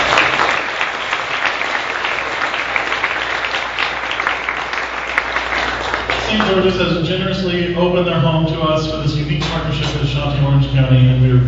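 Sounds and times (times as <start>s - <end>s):
audience applause: 0.0s - 7.0s
speech: 6.6s - 11.4s.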